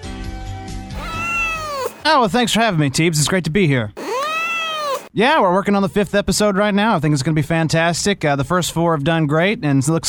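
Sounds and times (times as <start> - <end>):
cat meowing: 1.0 - 2.1, 4.0 - 5.1
speech: 2.0 - 4.0, 5.2 - 10.0.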